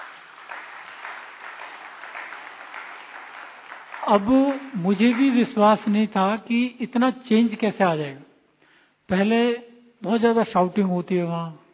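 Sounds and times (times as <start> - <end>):
audience applause: 0.0 - 5.5
speech: 4.1 - 8.3, 9.1 - 11.6.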